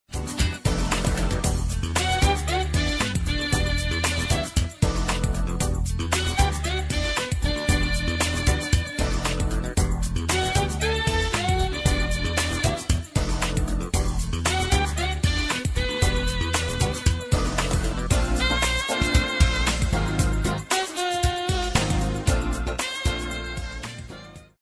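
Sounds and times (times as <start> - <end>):
jazz pop music: 0.1 - 24.6.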